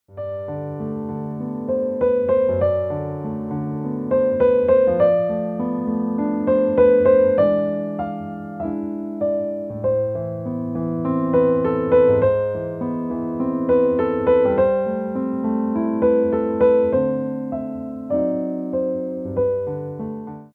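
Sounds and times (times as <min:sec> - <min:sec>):
piano: 0:00.1 - 0:20.5.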